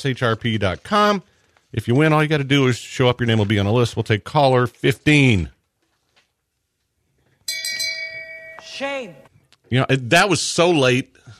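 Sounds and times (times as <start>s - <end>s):
speech: 0.0s - 5.6s, 8.8s - 11.3s
bell struck and ringing: 7.5s - 9.3s.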